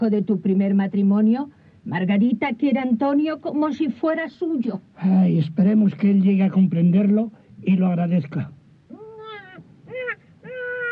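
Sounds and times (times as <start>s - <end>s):
speech: 0.0s - 8.6s
newborn baby crying: 8.9s - 10.9s.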